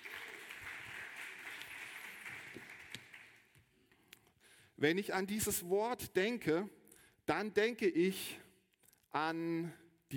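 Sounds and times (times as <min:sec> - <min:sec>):
audience applause: 0:00.0 - 0:03.6
speech: 0:04.8 - 0:08.4, 0:09.2 - 0:10.1.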